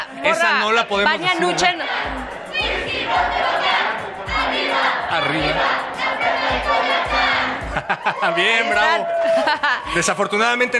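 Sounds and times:
speech: 0:00.1 - 0:03.6, 0:04.8 - 0:07.2, 0:08.0 - 0:10.7
crowd shouting a school cheer chant at a Mexican school or university event: 0:01.2 - 0:09.6
laughter: 0:07.4 - 0:10.4.

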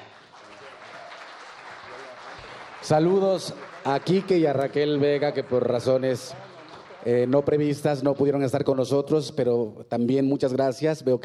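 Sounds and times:
audience applause: 0:00.0 - 0:08.0
speech: 0:02.8 - 0:11.2.

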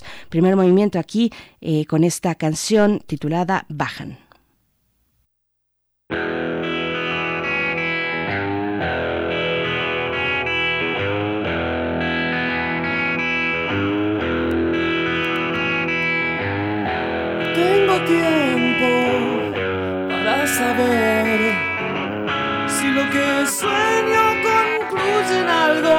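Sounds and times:
speech: 0:00.3 - 0:04.2, 0:22.9 - 0:25.9
heavily distorted electric guitar: 0:06.1 - 0:25.9.

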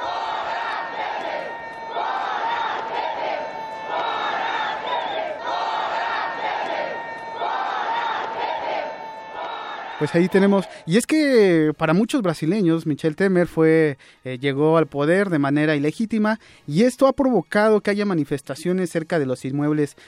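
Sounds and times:
stadium crowd booing the president: 0:00.0 - 0:11.1
speech: 0:10.0 - 0:20.0.

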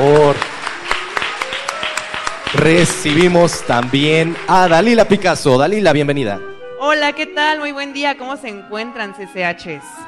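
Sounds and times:
speech: 0:00.0 - 0:00.5, 0:02.6 - 0:10.0
audience applause: 0:00.0 - 0:05.6.

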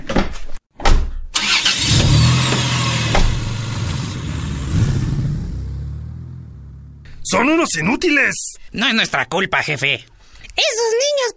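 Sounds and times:
car engine starting, rumbling and pulling away: 0:01.4 - 0:07.3
speech: 0:07.4 - 0:11.3.

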